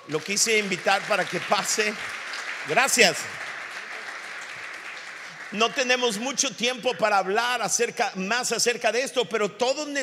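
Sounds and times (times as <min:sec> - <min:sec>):
audience applause: 0:00.0 - 0:06.9
speech: 0:00.1 - 0:03.5, 0:05.5 - 0:10.0.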